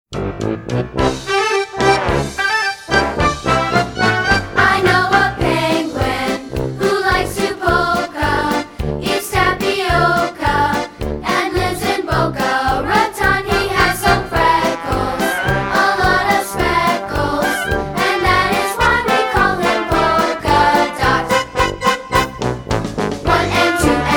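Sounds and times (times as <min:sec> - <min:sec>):
polka music: 0:00.1 - 0:24.1.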